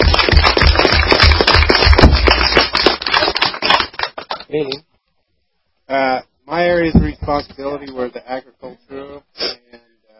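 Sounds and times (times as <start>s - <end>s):
audience applause: 0.0s - 4.3s
speech: 4.6s - 4.9s, 5.9s - 9.8s.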